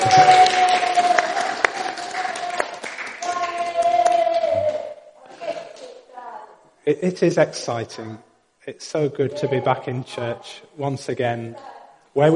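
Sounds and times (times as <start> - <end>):
audience applause: 0.0 - 4.9
speech: 7.0 - 12.3.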